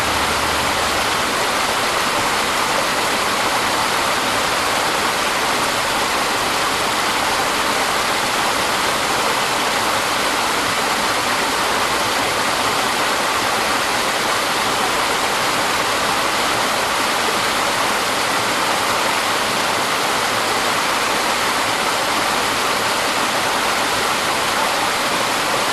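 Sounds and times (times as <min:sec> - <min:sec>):
medium waterfall in a forest 10m distance: 0:00.0 - 0:25.7.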